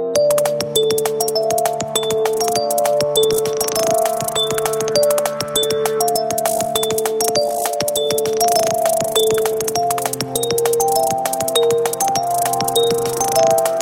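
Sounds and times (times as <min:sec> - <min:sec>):
DJ remix: 0:00.2 - 0:13.7.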